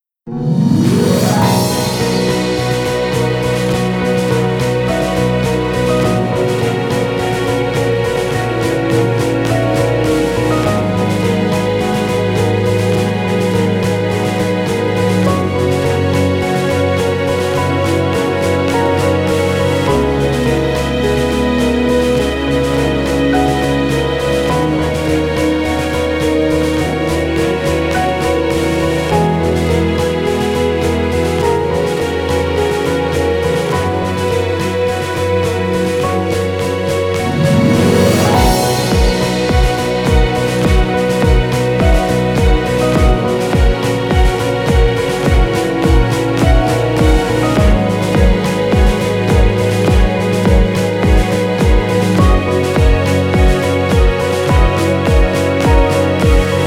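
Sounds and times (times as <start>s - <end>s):
orchestra: 0.3s - 56.6s.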